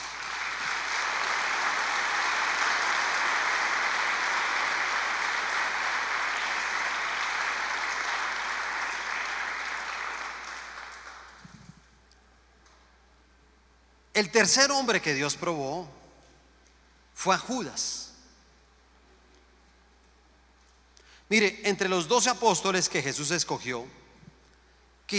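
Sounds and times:
applause: 0:00.0 - 0:11.9
speech: 0:14.2 - 0:16.0, 0:17.2 - 0:18.0, 0:21.3 - 0:24.0.

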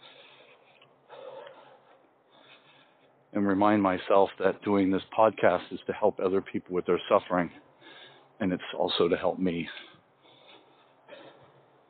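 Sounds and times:
deep breath: 0:00.0 - 0:03.2, 0:07.7 - 0:08.4, 0:09.8 - 0:11.8
speech: 0:03.4 - 0:07.7, 0:08.4 - 0:09.9.

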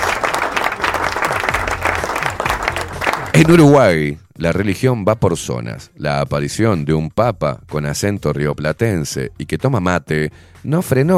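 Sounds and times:
applause: 0:00.0 - 0:03.7
speech: 0:03.4 - 0:11.1.

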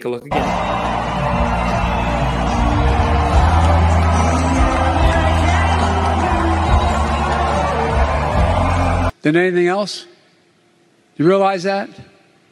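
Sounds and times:
speech: 0:00.0 - 0:01.8, 0:09.2 - 0:10.1, 0:11.2 - 0:12.1
large rally crowd cheering and roaring: 0:00.3 - 0:09.1
scattered shouts from rally crowd: 0:00.3 - 0:09.1.

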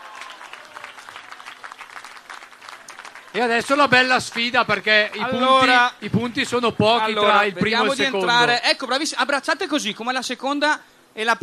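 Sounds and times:
crowd applause: 0:00.0 - 0:05.9
speech: 0:03.4 - 0:11.4.

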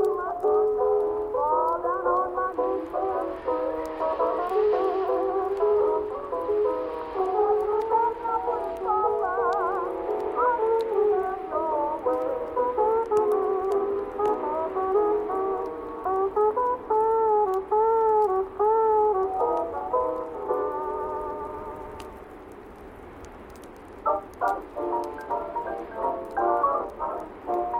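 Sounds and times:
oldies music playing softly from another room: 0:00.0 - 0:22.4, 0:23.5 - 0:27.7.

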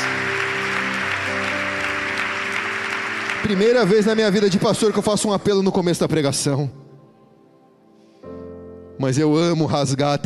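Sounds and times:
audience applause: 0:00.0 - 0:05.4
speech: 0:03.4 - 0:06.8, 0:09.0 - 0:10.2.

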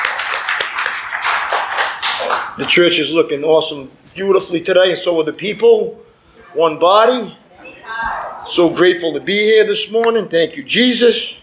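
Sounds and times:
round of applause: 0:00.0 - 0:02.8
speech: 0:02.4 - 0:07.4, 0:08.4 - 0:11.4.

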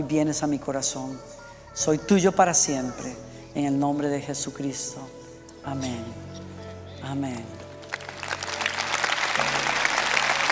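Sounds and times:
speech: 0:00.0 - 0:06.4, 0:07.0 - 0:07.6
audience applause: 0:07.9 - 0:10.5.

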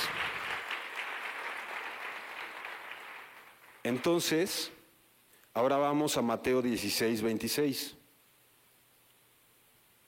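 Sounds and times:
applause: 0:00.0 - 0:04.7
speech: 0:03.8 - 0:04.8, 0:05.6 - 0:08.0.

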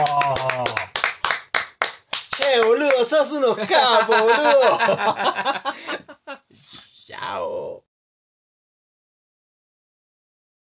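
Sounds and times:
hands clapping: 0:00.0 - 0:03.4
speech: 0:03.1 - 0:05.8
laughter: 0:03.4 - 0:06.4.

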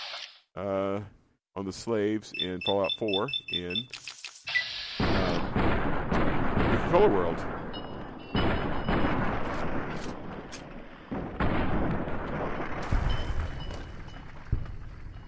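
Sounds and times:
speech: 0:00.6 - 0:04.1, 0:06.9 - 0:07.6
heavy booming gunfire in the video game Fallout 4: 0:05.0 - 0:15.2.

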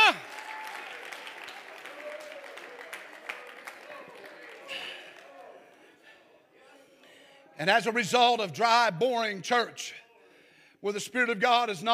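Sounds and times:
audience clapping hands: 0:00.0 - 0:05.8
speech: 0:07.6 - 0:10.0, 0:10.8 - 0:11.9.

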